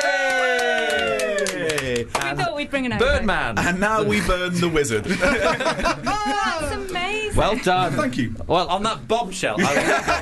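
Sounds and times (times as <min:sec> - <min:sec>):
loud sustained cheer from a few voices: 0:00.0 - 0:02.2
sharp scattered claps: 0:00.0 - 0:02.4
speech: 0:02.6 - 0:10.2
laughter: 0:03.6 - 0:06.8, 0:09.6 - 0:10.2.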